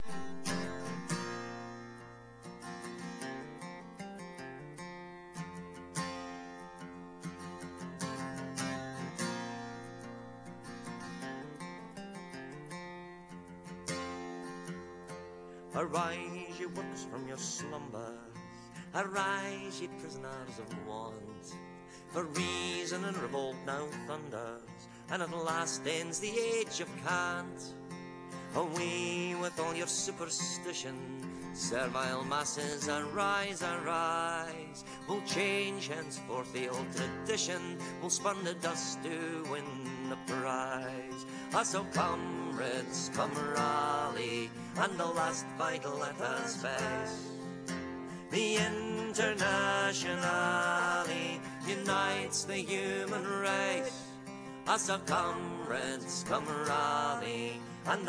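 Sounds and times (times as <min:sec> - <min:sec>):
guitar: 0:00.0 - 0:58.0
person singing: 0:15.7 - 0:27.7, 0:28.5 - 0:47.5, 0:48.2 - 0:58.0.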